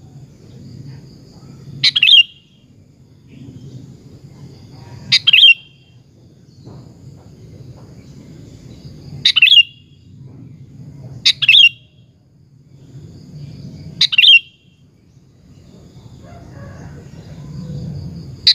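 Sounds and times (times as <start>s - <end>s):
sooty-headed bulbul singing bubbling phrases: 1.8s - 2.6s, 5.1s - 6.0s, 9.3s - 10.0s, 11.3s - 12.0s, 14.0s - 14.7s.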